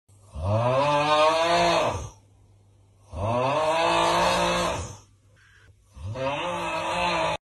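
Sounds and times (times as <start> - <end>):
man snoring: 0.2 - 2.2, 3.0 - 5.1, 5.9 - 7.4.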